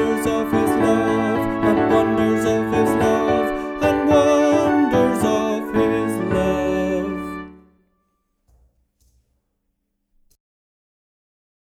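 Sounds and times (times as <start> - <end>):
tenor singing: 0.0 - 7.7.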